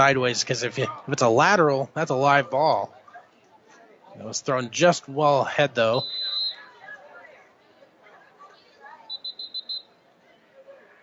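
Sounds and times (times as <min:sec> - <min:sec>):
speech: 0:00.0 - 0:03.0, 0:04.2 - 0:06.2
referee's whistle at a football game: 0:05.9 - 0:06.7, 0:09.0 - 0:10.0.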